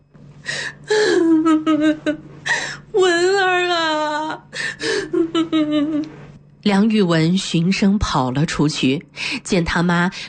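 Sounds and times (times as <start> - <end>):
woman crying mournfully yet partly joyfully: 0.5 - 6.1
speech: 1.7 - 2.3, 6.7 - 10.2.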